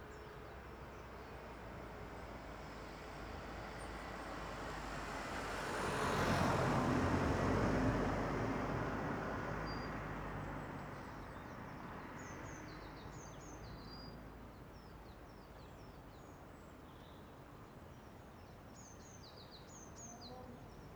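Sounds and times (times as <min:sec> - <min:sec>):
traffic: 0:00.2 - 0:15.8
distant birdsong: 0:11.0 - 0:20.9.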